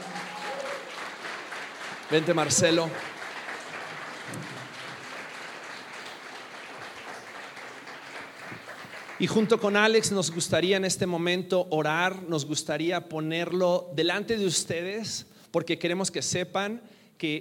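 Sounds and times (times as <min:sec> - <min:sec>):
loud applause: 0:00.0 - 0:10.5
speech: 0:02.1 - 0:03.2, 0:09.2 - 0:17.3.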